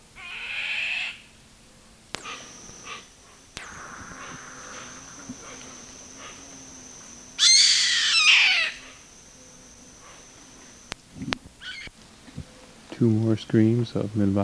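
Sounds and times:
bird screeching: 0.2s - 1.2s, 3.7s - 10.2s, 11.6s - 11.9s
high-pitched whine: 2.1s - 14.3s.

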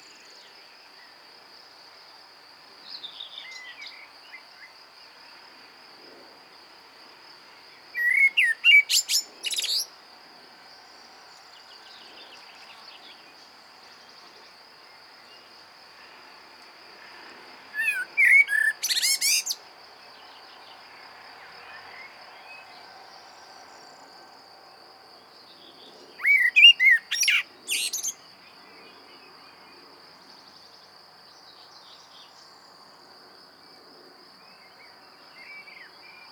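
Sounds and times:
common blackbird singing: 8.0s - 9.9s, 17.8s - 19.6s, 26.2s - 28.2s.

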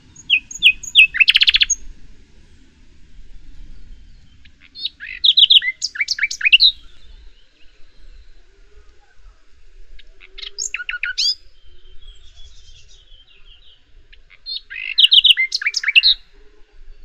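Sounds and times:
common nightingale Luscinia megarhynchos song: 0.0s - 17.0s.

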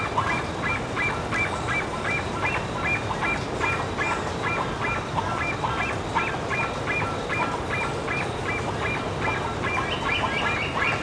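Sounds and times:
bird honking: 0.2s - 11.0s.

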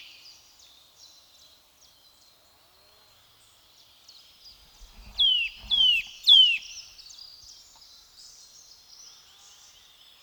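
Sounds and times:
Sitta europaea: 4.6s - 6.9s.

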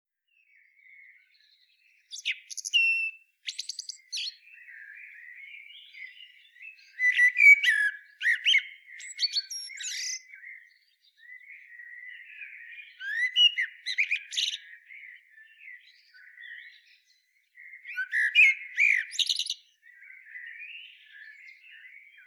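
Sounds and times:
common blackbird song, Turdus merula: 0.2s - 22.2s.

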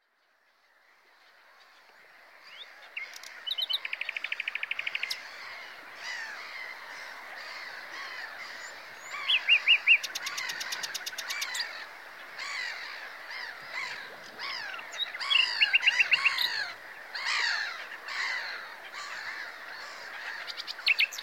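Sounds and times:
common nightingale song: 2.5s - 5.2s, 8.5s - 11.7s, 14.3s - 17.6s, 20.3s - 21.2s.

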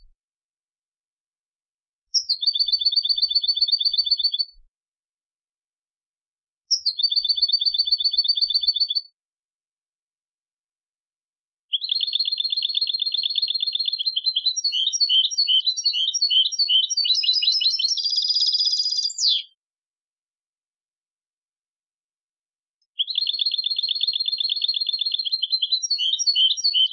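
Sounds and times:
European goldfinch Carduelis carduelis singing with twittering bursts and trills: 2.1s - 4.5s, 6.7s - 9.0s, 11.7s - 19.6s, 22.9s - 26.9s.

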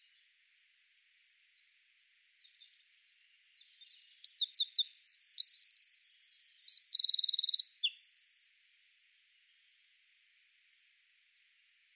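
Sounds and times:
Eurasian wren singing: 0.0s - 0.3s, 1.5s - 10.0s, 11.3s - 11.9s.

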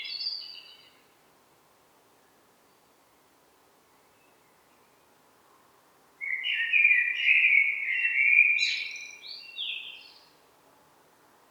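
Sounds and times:
Eurasian blackbird song: 0.0s - 1.0s, 6.2s - 10.4s.

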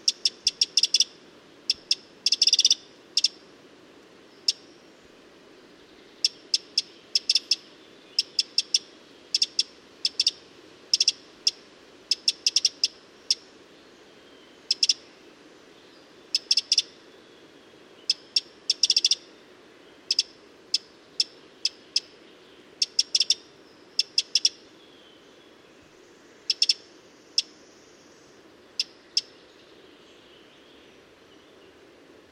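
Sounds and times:
Eurasian wren ticking calls: 0.0s - 3.4s, 4.3s - 4.8s, 6.1s - 13.5s, 14.6s - 15.1s, 16.3s - 17.0s, 18.0s - 19.3s, 20.0s - 22.2s, 22.8s - 24.6s, 26.4s - 27.6s, 28.8s - 29.4s
low steady hiss: 0.0s - 32.3s.

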